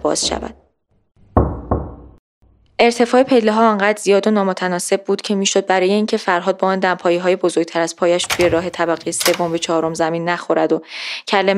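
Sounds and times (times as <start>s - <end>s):
speech: 0.0s - 0.6s, 2.8s - 11.5s
knocks on a door: 1.3s - 2.2s.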